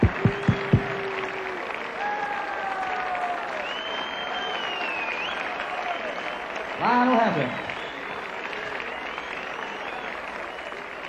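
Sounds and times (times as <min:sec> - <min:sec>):
audience applause: 0:00.0 - 0:11.0
speech: 0:07.3 - 0:07.6.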